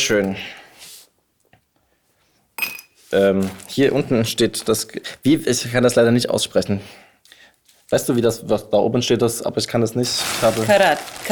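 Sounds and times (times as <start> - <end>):
speech: 0.1 - 0.6, 3.1 - 7.0, 7.9 - 11.3
glass jar clinking as it is filled with candied nuts: 2.6 - 3.0.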